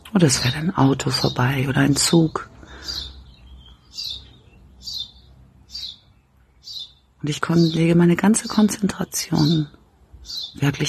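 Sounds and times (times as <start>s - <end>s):
birds chirping: 0.0s - 10.8s
speech: 0.2s - 3.0s, 7.2s - 10.8s.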